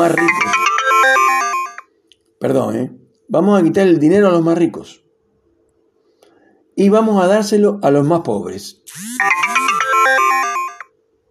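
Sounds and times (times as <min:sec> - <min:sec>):
speech: 0:00.0 - 0:00.6, 0:02.4 - 0:05.0, 0:06.8 - 0:09.5
phone incoming message notification tone: 0:00.0 - 0:01.9, 0:09.1 - 0:10.9.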